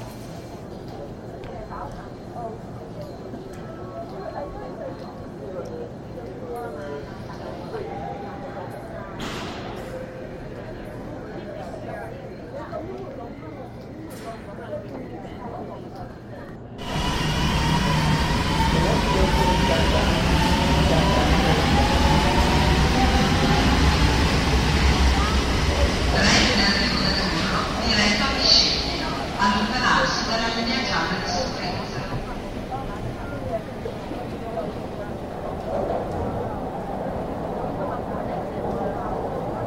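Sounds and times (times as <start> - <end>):
low murmuring voices: 0.9 - 39.6
loud dense train roar: 16.8 - 39.6.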